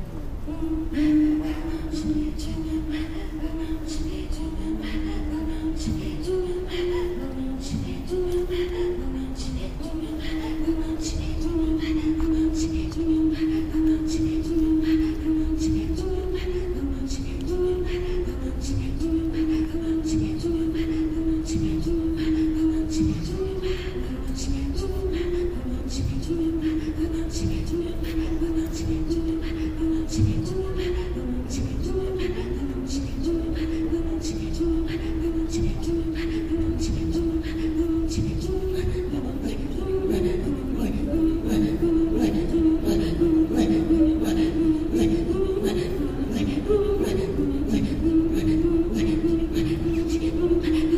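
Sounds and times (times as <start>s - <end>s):
Inuit throat singing: 0.2s - 50.9s.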